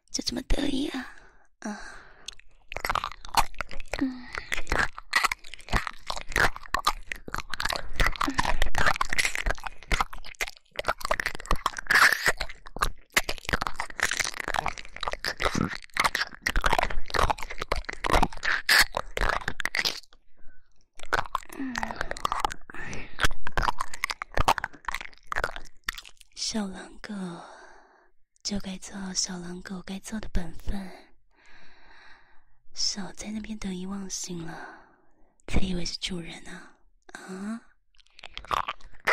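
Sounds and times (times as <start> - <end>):
speech: 0.2 - 2.0, 28.5 - 31.0, 33.0 - 34.8, 35.5 - 36.7, 37.3 - 37.7
wet mouth sounds: 2.0 - 20.2, 21.0 - 26.4, 37.9 - 39.1
hard candy crunching and chewing: 2.0 - 26.4, 38.0 - 39.1.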